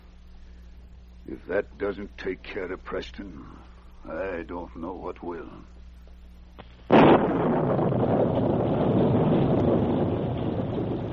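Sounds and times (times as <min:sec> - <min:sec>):
speech: 0:01.3 - 0:05.8
violent storm wind roaring: 0:06.9 - 0:11.1.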